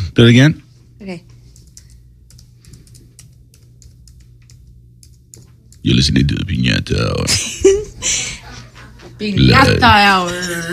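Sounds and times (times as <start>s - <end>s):
speech: 0.2s - 1.3s, 5.8s - 8.2s, 9.2s - 10.7s
typing on a computer keyboard: 1.5s - 5.8s.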